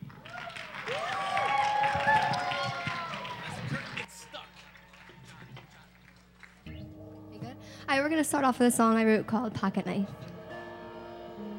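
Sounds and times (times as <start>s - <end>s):
audience applause greeting a band: 0.0s - 6.7s
whistle-like cheers: 0.2s - 5.4s
speech: 8.2s - 10.2s.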